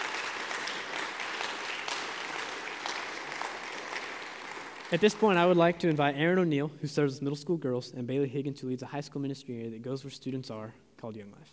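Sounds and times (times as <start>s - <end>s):
audience clapping: 0.0s - 6.1s
speech: 4.9s - 11.5s.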